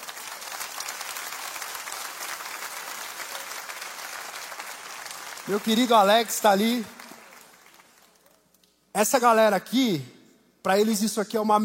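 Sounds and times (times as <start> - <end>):
audience applauding: 0.0 - 8.4
speech: 5.5 - 7.0, 9.0 - 11.6.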